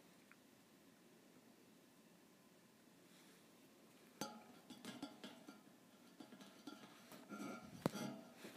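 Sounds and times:
thin metal bars tapped: 0:04.2 - 0:08.4.

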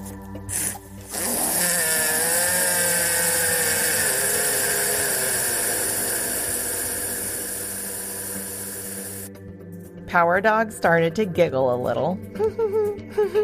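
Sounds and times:
loud drawn-out fart sound effect: 0:00.5 - 0:09.3
speech: 0:10.1 - 0:13.4.

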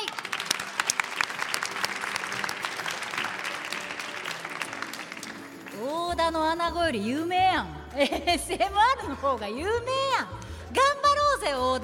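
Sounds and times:
audience applause: 0:00.0 - 0:06.0
speech: 0:06.2 - 0:11.8.

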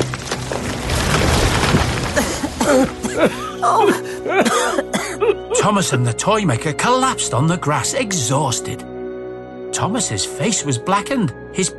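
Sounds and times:
flaming branch crashing to the ground: 0:00.0 - 0:03.2
speech: 0:02.8 - 0:08.9, 0:09.7 - 0:11.7.

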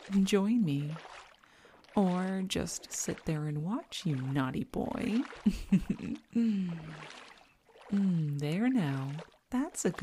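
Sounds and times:
pool water sloshing from someone getting in: 0:00.0 - 0:10.0
speech: 0:00.1 - 0:01.2, 0:02.0 - 0:07.3, 0:07.9 - 0:10.0
person sighing: 0:06.4 - 0:06.9.

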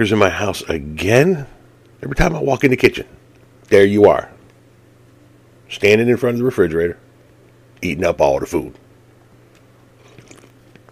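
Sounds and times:
speech: 0:00.0 - 0:04.3, 0:05.7 - 0:07.0, 0:07.8 - 0:08.8
person sipping a drink: 0:10.0 - 0:10.8.

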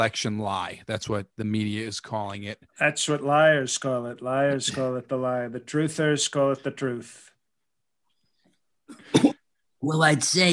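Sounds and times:
speech: 0:00.0 - 0:07.3, 0:08.9 - 0:10.5
cough: 0:08.9 - 0:09.5.

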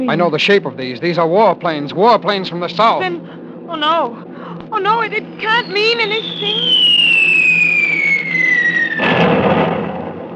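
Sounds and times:
speech: 0:00.0 - 0:06.9
descending bomb whistle: 0:05.3 - 0:09.4
bomb explosion: 0:06.2 - 0:10.3.

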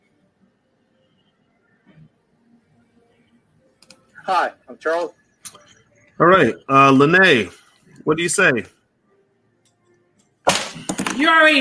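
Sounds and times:
speech: 0:04.3 - 0:05.6, 0:06.2 - 0:08.8, 0:11.2 - 0:11.6
ink pen slammed down on table: 0:10.4 - 0:11.3.

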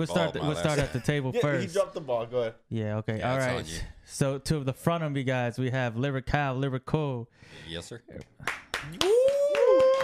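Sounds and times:
speech: 0:00.0 - 0:09.2
audience clapping: 0:08.2 - 0:10.0.

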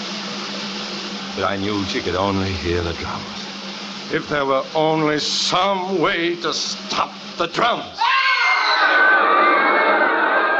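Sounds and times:
speech: 0:01.4 - 0:03.4, 0:04.1 - 0:08.2
terrified roar of a huge crowd: 0:08.0 - 0:10.5.

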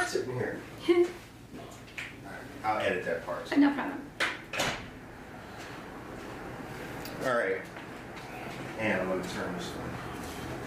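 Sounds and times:
low hum: 0:00.0 - 0:10.6
speech: 0:00.1 - 0:01.7, 0:02.6 - 0:04.1, 0:07.2 - 0:07.8, 0:08.8 - 0:10.1
door being closed: 0:04.5 - 0:05.0.

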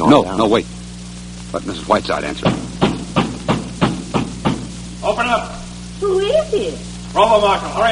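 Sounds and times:
speech: 0:00.1 - 0:00.8, 0:01.5 - 0:02.6, 0:05.1 - 0:07.8
loud knocking on a door: 0:02.4 - 0:04.8.

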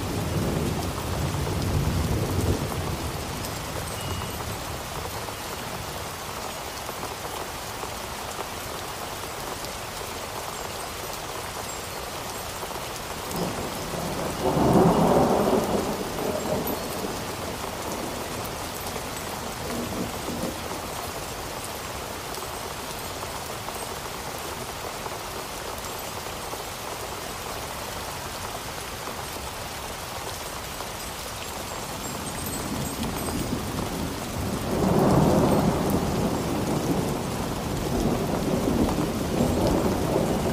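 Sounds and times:
storm rain hissing: 0:00.0 - 0:40.5
low rumbles of thunder: 0:13.3 - 0:20.9, 0:32.0 - 0:40.5.

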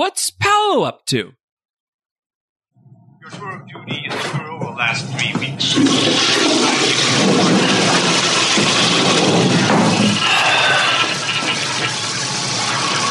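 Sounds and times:
speech: 0:00.0 - 0:01.4, 0:03.3 - 0:08.0
toilet flushing: 0:04.8 - 0:13.1.

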